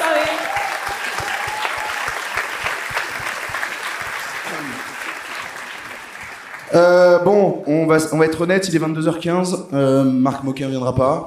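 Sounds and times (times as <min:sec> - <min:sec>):
audience applause for the winning team at an evening quiz game: 0:00.0 - 0:07.3
speech: 0:06.7 - 0:11.2.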